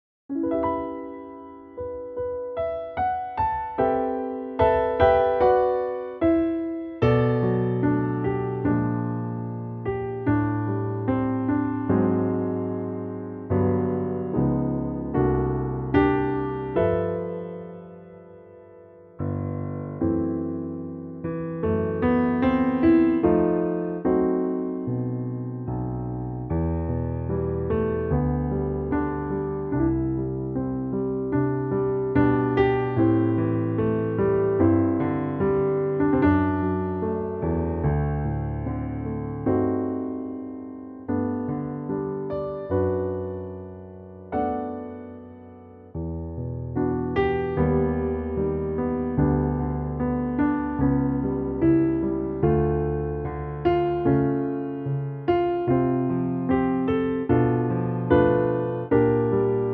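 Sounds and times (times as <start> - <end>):
piano: 0.0 - 59.7.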